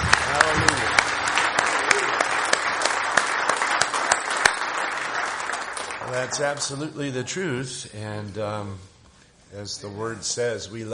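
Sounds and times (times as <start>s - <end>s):
audience hand clapping: 0.0s - 6.9s
speech: 6.2s - 8.9s, 9.5s - 10.9s.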